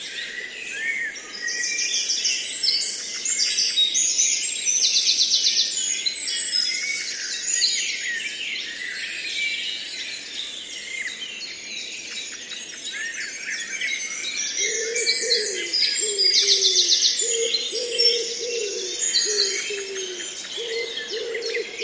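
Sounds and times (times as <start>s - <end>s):
blackbird singing: 0.0s - 21.8s
wren singing: 14.6s - 21.8s.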